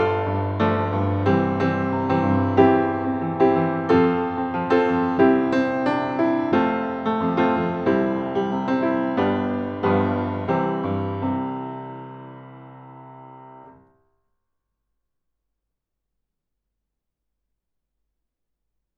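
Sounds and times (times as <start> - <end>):
piano strings played inside the piano: 0.0 - 13.9.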